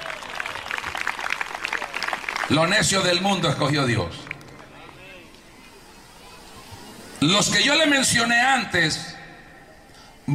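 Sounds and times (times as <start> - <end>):
audience applause: 0.0 - 3.2
speech: 2.5 - 4.3, 7.2 - 9.1.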